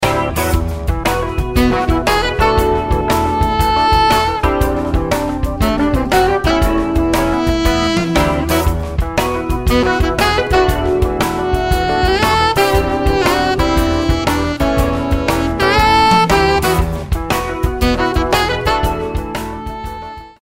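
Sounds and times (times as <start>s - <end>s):
modern jazz: 0.0s - 20.4s.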